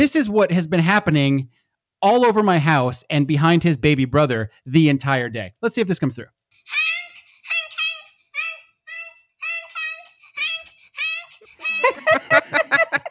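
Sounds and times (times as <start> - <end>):
speech: 0.0 - 6.8
child giggling: 7.5 - 13.1.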